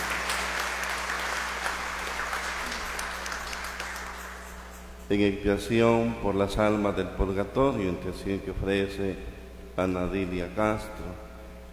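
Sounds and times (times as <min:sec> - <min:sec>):
audience applause: 0:00.0 - 0:04.7
low constant hum: 0:00.0 - 0:11.7
speech: 0:05.1 - 0:11.2.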